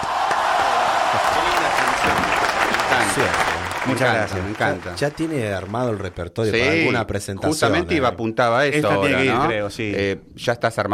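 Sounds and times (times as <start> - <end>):
audience applause: 0.0 - 6.7
speech: 3.2 - 10.9.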